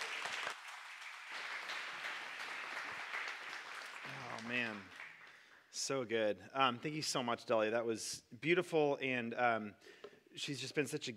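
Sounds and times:
audience applause: 0.0 - 5.5
speech: 4.4 - 5.0, 5.7 - 11.1.

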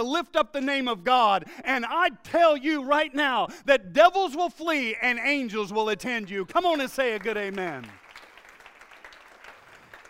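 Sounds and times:
speech: 0.0 - 8.0
audience clapping: 6.0 - 10.0.

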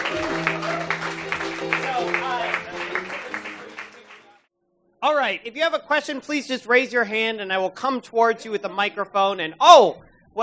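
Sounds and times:
audience applause: 0.0 - 4.4
speech: 5.1 - 10.4.

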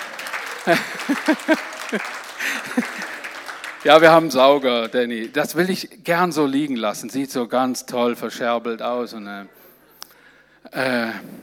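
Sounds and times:
laughter and chatter: 0.0 - 3.4
hands clapping: 0.0 - 5.8
speech: 0.6 - 3.2, 3.8 - 9.6, 10.7 - 11.4.

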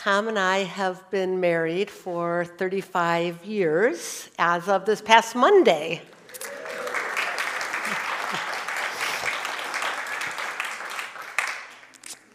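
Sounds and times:
speech: 0.0 - 6.5
audience applause: 6.3 - 11.9.

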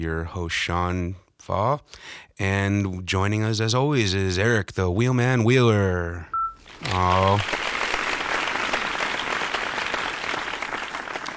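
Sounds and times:
speech: 0.0 - 7.7
applause sound effect: 6.7 - 11.3.

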